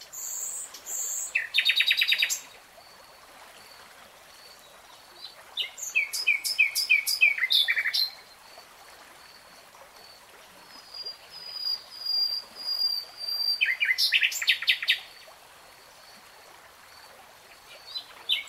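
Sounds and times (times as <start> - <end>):
nightingale song: 0.0 - 2.6, 4.6 - 8.4, 10.8 - 15.2, 17.7 - 18.4.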